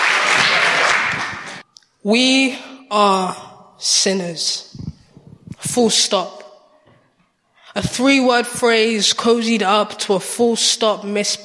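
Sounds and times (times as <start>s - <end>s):
audience applause: 0.0s - 1.6s
speech: 2.0s - 4.8s, 5.7s - 6.4s, 7.8s - 11.4s.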